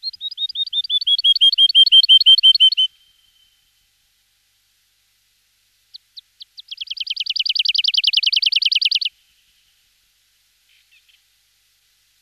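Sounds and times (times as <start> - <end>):
woodlark song in a local recreation area: 0.0 - 3.6, 5.9 - 9.7.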